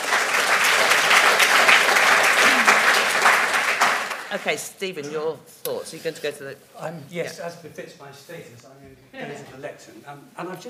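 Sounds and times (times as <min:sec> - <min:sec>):
audience applause welcoming speakers: 0:00.0 - 0:04.6
speech: 0:04.3 - 0:10.6.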